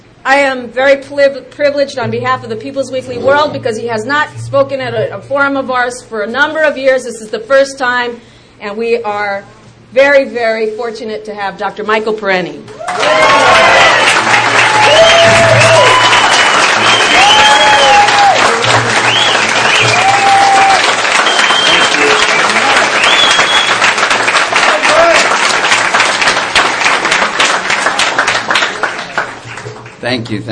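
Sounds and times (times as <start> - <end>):
speech: 0.2 - 13.9, 30.1 - 30.5
faint voices and cheers: 12.8 - 23.7
sustained applause from a large audience for a speaker: 12.8 - 30.2.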